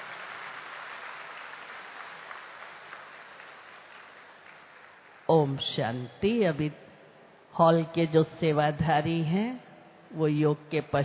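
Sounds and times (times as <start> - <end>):
audience applause: 0.0 - 5.3
speech: 5.3 - 6.8, 7.6 - 11.0.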